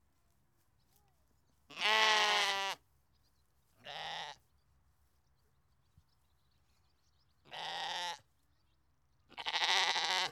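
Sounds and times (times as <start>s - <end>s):
Belgian sheep bleating: 1.7s - 2.8s, 3.8s - 4.4s, 7.5s - 8.2s, 9.3s - 10.3s.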